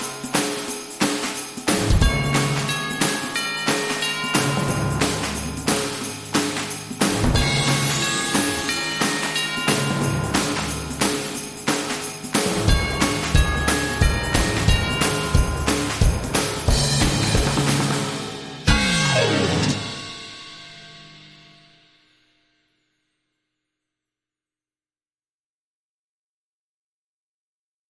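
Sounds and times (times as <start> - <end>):
joyful Christmas tune: 0.0 - 21.7.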